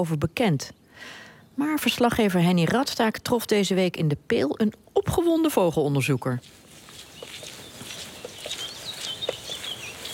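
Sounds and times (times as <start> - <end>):
speech: 0.0 - 6.6
icterine warbler singing: 6.8 - 10.1.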